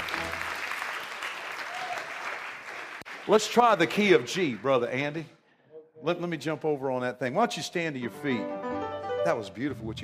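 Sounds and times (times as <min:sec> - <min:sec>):
audience applauding the band: 0:00.0 - 0:04.9
speech: 0:03.3 - 0:05.4, 0:06.0 - 0:08.6, 0:09.2 - 0:10.0.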